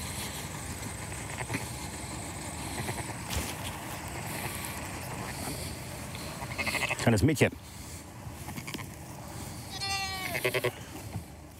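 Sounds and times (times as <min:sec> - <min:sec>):
outdoor wind: 0:00.0 - 0:11.5
sheep bleating: 0:06.4 - 0:07.1, 0:09.7 - 0:10.9
speech: 0:07.1 - 0:07.7, 0:10.4 - 0:10.8.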